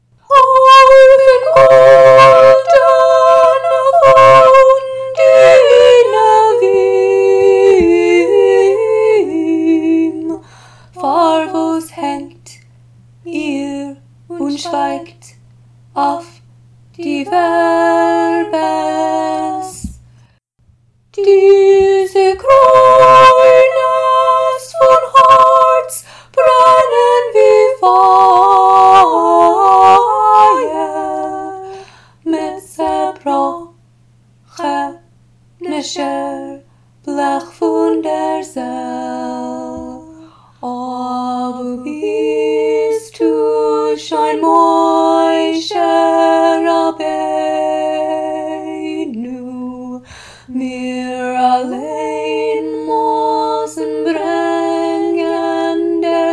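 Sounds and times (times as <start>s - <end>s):
soprano singing: 0.0s - 20.1s, 21.1s - 33.8s, 34.5s - 56.3s.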